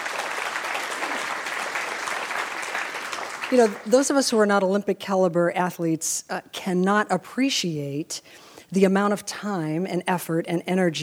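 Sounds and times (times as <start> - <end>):
crowd applause: 0.0 - 3.9
speech: 3.5 - 11.0.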